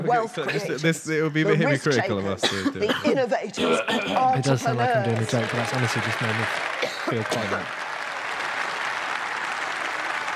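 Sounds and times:
speech: 0.1 - 7.9
crowd applause: 4.7 - 10.3.

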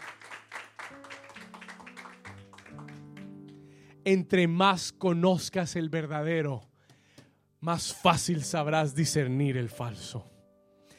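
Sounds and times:
audience applause: 0.0 - 3.5
speech: 4.0 - 6.7, 7.6 - 10.3.

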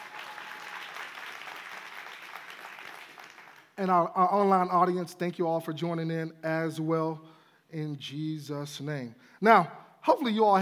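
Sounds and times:
church congregation applauding at a Sunday morning Thanksgiving service: 0.0 - 3.8
speech: 3.8 - 10.6.

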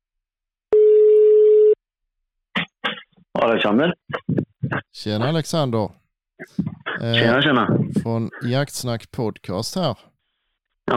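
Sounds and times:
telephone ringing tone while placing a call: 0.7 - 1.8
speech: 3.4 - 4.0, 5.0 - 10.1.

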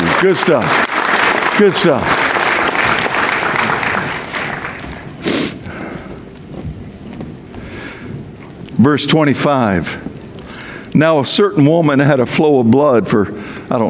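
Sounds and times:
audience applause: 0.0 - 5.7
speech: 0.2 - 0.9, 1.6 - 2.2, 8.8 - 10.1, 11.0 - 13.8.

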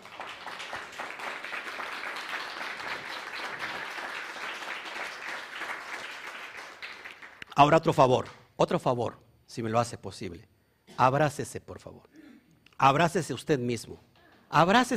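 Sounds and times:
audience applause: 0.0 - 7.4
speech: 7.6 - 12.2, 12.8 - 14.9.

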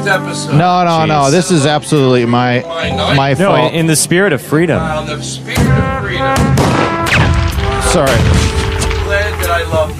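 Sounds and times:
speech: 0.0 - 7.3, 7.9 - 8.6
gunshot: 5.6 - 9.2.

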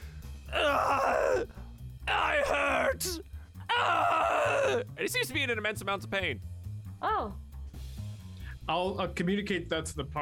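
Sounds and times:
voice imitating a screeching owlbear roar: 0.6 - 1.4, 2.1 - 4.8
speech: 4.7 - 7.4, 8.7 - 10.1.

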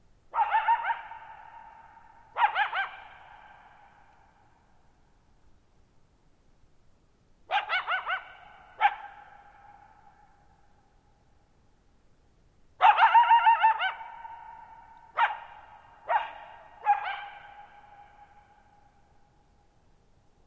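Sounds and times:
coyote giving quavering yodel-like howls and short yips: 0.3 - 3.9, 7.5 - 10.2, 12.8 - 18.7.

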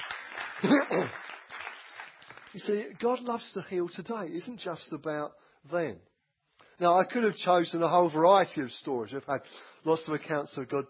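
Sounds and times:
audience applause: 0.0 - 3.2
speech: 0.6 - 1.2, 2.5 - 6.1, 6.8 - 10.8.

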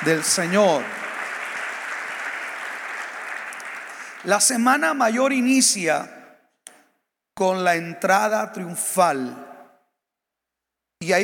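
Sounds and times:
speech: 0.0 - 1.0, 4.2 - 6.2, 7.4 - 9.4, 11.0 - 11.2
crowd applauding: 0.0 - 4.9.

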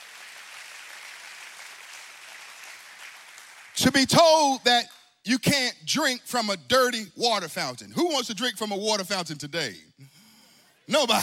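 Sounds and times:
audience applause: 0.0 - 3.8
speech: 3.8 - 9.9, 10.9 - 11.2.

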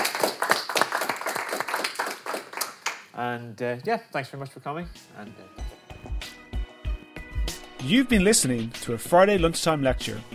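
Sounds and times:
audience applause: 0.0 - 3.1
speech: 3.2 - 5.6, 7.8 - 10.3.

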